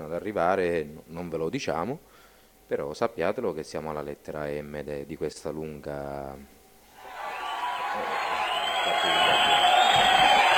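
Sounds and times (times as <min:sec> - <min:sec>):
speech: 0:00.0 - 0:06.6
warm applause: 0:07.0 - 0:10.5.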